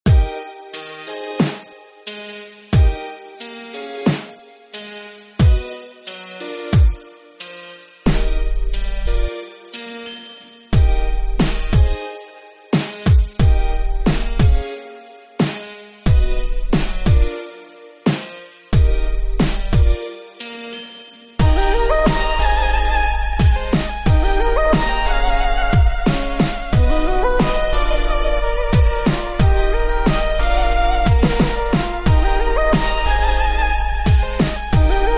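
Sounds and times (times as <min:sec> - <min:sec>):
hip hop music: 0:00.1 - 0:35.1.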